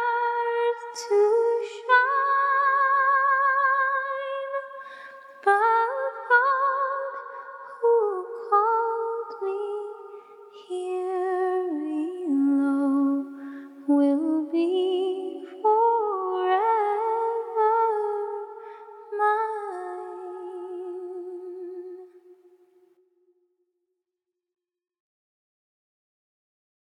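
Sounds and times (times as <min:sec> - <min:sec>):
a cappella hymn singing: 0:00.0 - 0:04.8, 0:05.4 - 0:22.1.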